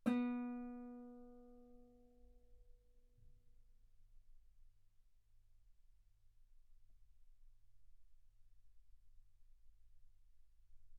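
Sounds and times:
guitar B3 note on B string played fortissimo: 0.0 - 1.6.

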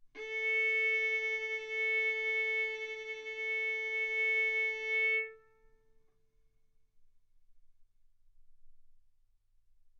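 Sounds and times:
violin bowed mezzo-forte on the A string, A4 and B4: 0.2 - 5.6.

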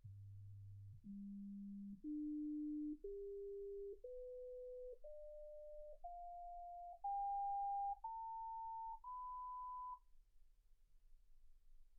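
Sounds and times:
sine tones: 0.7 - 10.1.

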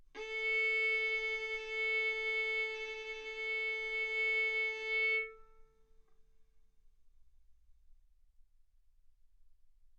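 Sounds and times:
violin bowed arco notes: 0.2 - 5.6.

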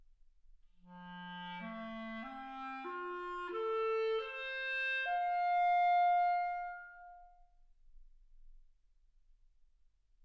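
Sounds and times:
clarinet: 0.8 - 7.4.

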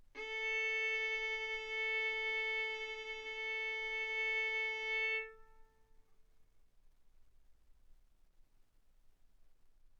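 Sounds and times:
violin bowed mezzo-forte on the A string, A4 and B4: 0.2 - 5.8.

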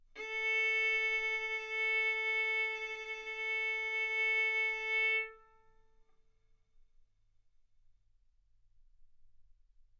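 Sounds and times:
violin arco on A string: 0.2 - 5.8.

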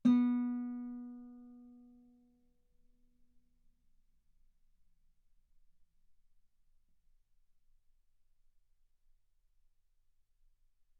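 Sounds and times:
guitar note B3: 0.0 - 1.6.

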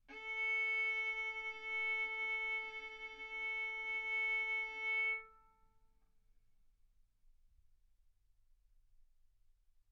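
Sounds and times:
violin bowed mezzo-forte on the A string, A4 and B4: 0.1 - 5.3.

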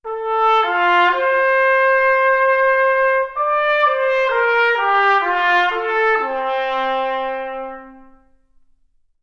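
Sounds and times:
trumpet: 0.0 - 8.7.

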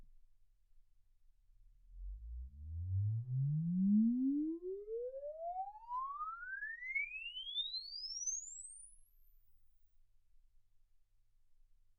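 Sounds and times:
exponential sine sweep from 10 Hz to 24 kHz: 2.9 - 9.4.

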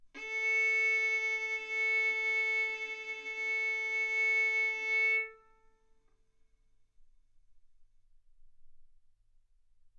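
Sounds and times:
violin bowed mezzo-forte on the A string, A4 and B4: 0.2 - 5.8.

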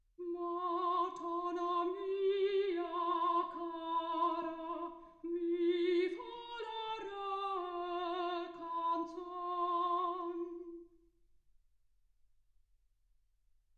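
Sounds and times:
soprano singing: 0.2 - 10.9.

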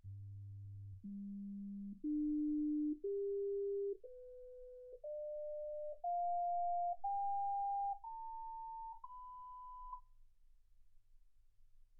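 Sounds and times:
sine tones: 0.0 - 10.2.

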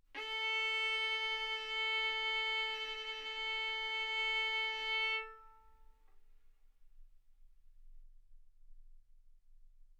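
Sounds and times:
violin bowed arco notes: 0.2 - 5.8.

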